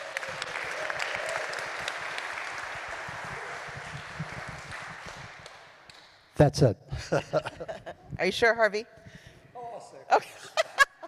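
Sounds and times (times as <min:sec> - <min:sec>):
crowd applauding: 0:00.0 - 0:06.1
speech: 0:06.4 - 0:09.0
laughter: 0:06.9 - 0:08.1, 0:10.3 - 0:11.0.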